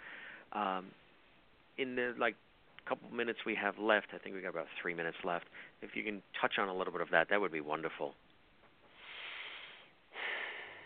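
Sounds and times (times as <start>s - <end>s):
deep breaths drawn before speaking: 0.0s - 0.5s, 5.5s - 5.8s, 8.8s - 10.8s
speech: 0.5s - 1.0s, 1.8s - 8.2s.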